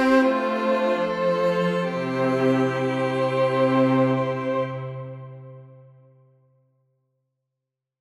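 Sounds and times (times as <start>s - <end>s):
string quartet: 0.0s - 5.9s.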